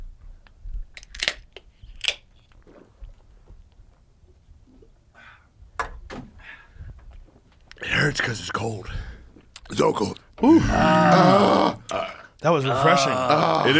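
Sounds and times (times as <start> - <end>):
cold beer can being cracked open: 0.9 - 3.3
speech: 8.1 - 9.1, 9.8 - 11.8, 12.4 - 13.7.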